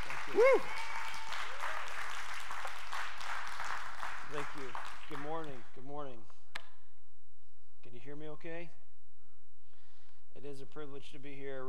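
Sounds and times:
crowd applauding: 0.0 - 5.6
speech: 0.3 - 0.8, 4.3 - 6.4, 7.8 - 8.8, 10.4 - 11.6.

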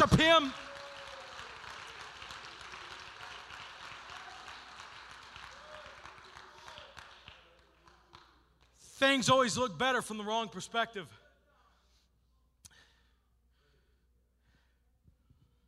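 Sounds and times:
speech: 0.0 - 0.7, 9.0 - 11.2
audience clapping: 0.0 - 8.8.

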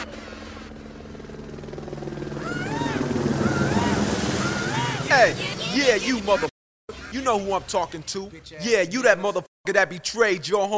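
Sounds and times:
police helicopter flying overhead: 0.0 - 6.5
rising and falling whooping tones: 2.1 - 5.6
speech: 5.1 - 6.5, 7.1 - 10.7.

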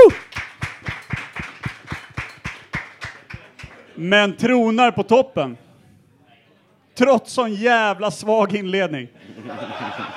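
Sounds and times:
big round of applause: 0.0 - 4.0
speech: 4.0 - 5.7, 7.0 - 10.1
laughter: 9.2 - 10.1.

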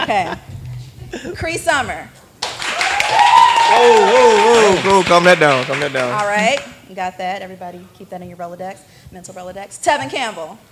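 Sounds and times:
speech: 0.1 - 2.2, 3.1 - 10.7
audience applause: 2.4 - 6.8
person cheering: 2.8 - 4.9.

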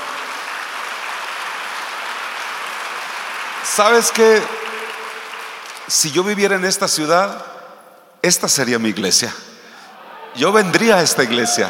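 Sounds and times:
audience applause: 0.0 - 6.1, 10.0 - 11.6
speech: 3.6 - 4.6, 5.9 - 7.6, 8.2 - 9.5, 10.4 - 11.6.

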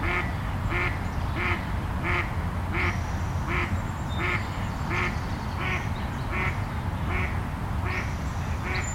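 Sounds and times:
duck-like quacks at Meadowbrook Park in Seattle: 0.0 - 8.8.

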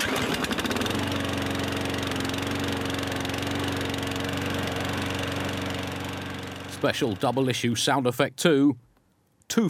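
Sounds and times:
neighbour mowing the lawn: 0.0 - 7.6
speech: 6.8 - 8.8.

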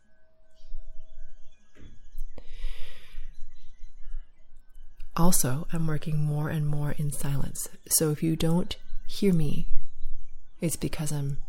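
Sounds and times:
sharp exhale or humming: 2.4 - 3.3
speech: 5.2 - 9.8, 10.6 - 11.4.

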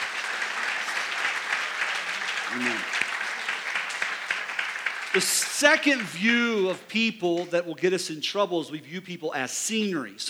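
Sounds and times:
crowd applause: 0.0 - 7.5
speech: 2.5 - 3.1, 5.2 - 10.2.

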